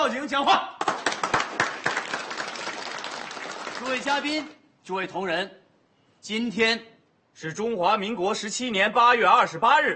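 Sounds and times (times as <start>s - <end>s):
speech: 0.0s - 0.8s, 3.8s - 5.6s, 6.2s - 9.9s
guests clapping at a 1928 coal mining company founding ceremony: 0.8s - 4.6s.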